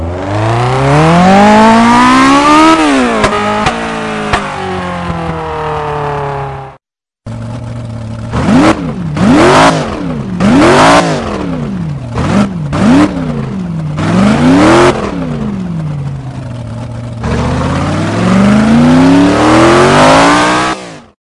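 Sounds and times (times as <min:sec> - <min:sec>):
off-road vehicles: 0:00.0 - 0:21.2.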